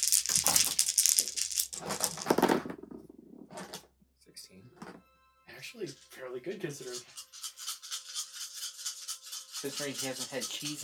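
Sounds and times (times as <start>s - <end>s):
dice rattling in a dice box: 0.0s - 3.0s, 6.8s - 10.8s
speech: 5.7s - 7.2s, 9.6s - 10.8s.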